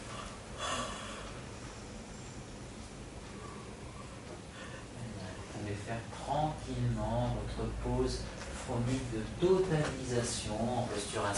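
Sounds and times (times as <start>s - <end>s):
person exhaling slowly during a guided relaxation exercise: 0.0s - 1.8s
speech: 5.8s - 11.3s.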